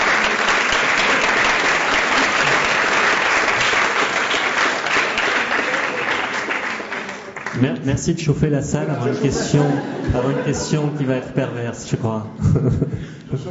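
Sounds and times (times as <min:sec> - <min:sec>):
audience applause: 0:00.0 - 0:07.8
speech: 0:07.6 - 0:13.5
laughter: 0:08.6 - 0:13.5.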